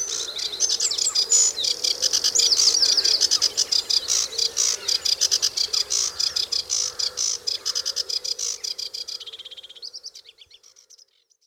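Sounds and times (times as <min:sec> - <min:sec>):
sedge warbler singing: 0:00.0 - 0:11.4.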